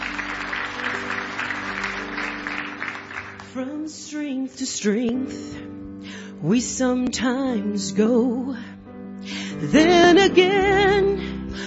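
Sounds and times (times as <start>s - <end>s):
church congregation applauding singers at a morning service: 0.0s - 3.7s
speech: 3.6s - 5.8s, 6.4s - 8.7s, 9.6s - 11.3s.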